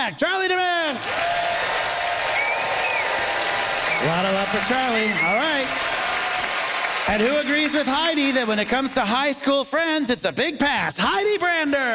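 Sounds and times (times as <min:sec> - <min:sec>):
speech: 0:00.0 - 0:01.3, 0:04.0 - 0:05.9, 0:07.1 - 0:11.9
game show studio audience applause voting for a contestant: 0:00.9 - 0:09.3.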